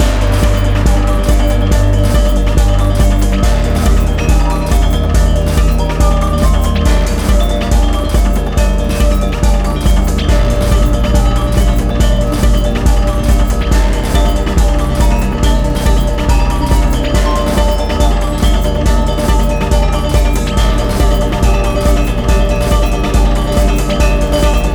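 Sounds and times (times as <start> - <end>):
gamelan techno music at medium tempo: 0.0 - 24.7.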